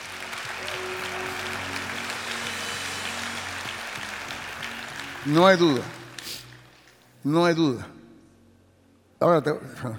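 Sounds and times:
audience applause: 0.0s - 7.0s
speech: 5.2s - 6.0s, 7.2s - 8.0s, 9.2s - 9.9s.

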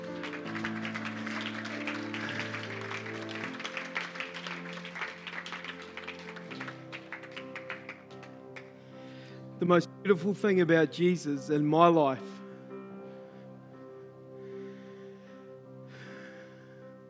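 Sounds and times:
audience clapping: 0.0s - 8.8s
speech: 9.6s - 12.3s.

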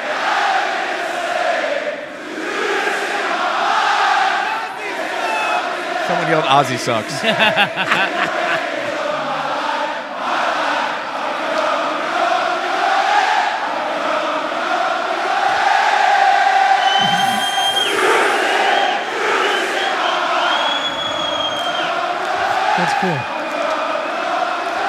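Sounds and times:
wrestling crowd cheering during ring entrance: 0.2s - 24.8s
laughter: 4.6s - 9.8s, 17.0s - 18.2s
speech: 6.3s - 8.6s, 22.8s - 23.3s
sharp whistles: 16.8s - 22.0s.

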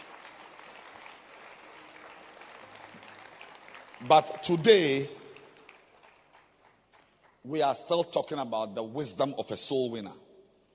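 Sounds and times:
people clapping hands: 0.0s - 7.6s
speech: 4.0s - 5.2s, 7.5s - 10.2s.

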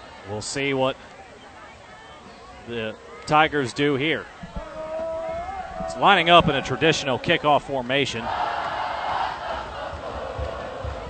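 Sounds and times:
speech: 0.2s - 1.2s, 2.6s - 4.4s, 5.9s - 8.5s
football student section cheering and yelling en masse: 4.6s - 11.0s.

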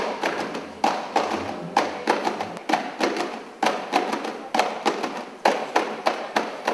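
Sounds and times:
rhythmic percussive slapping of a gumboot dance: 0.0s - 6.7s.

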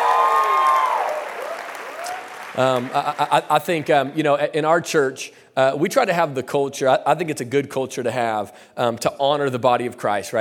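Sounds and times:
church congregation clapping: 0.0s - 4.2s
speech: 2.6s - 10.3s.

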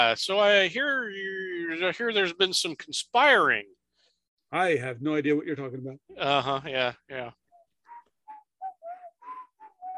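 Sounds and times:
speech: 0.0s - 3.8s, 4.5s - 7.4s
person whistling a casual breathy tune: 7.5s - 9.9s.

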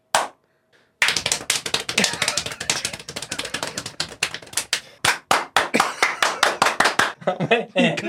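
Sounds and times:
cupped-palm hand clapping: 0.1s - 0.4s, 1.0s - 7.2s.

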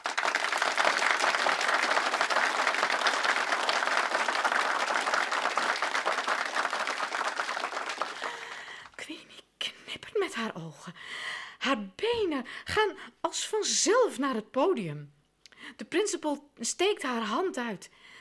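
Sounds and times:
audience applause: 0.0s - 8.9s
speech: 10.8s - 15.2s, 15.8s - 18.1s.

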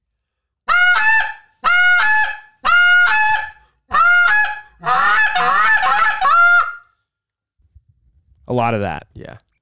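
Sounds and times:
goose call honking: 0.7s - 6.8s
speech: 8.5s - 9.5s.

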